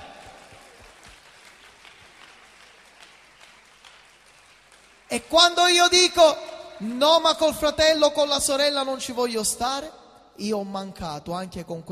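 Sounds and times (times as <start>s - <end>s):
audience applause: 0.0s - 5.4s
speech: 5.1s - 11.9s.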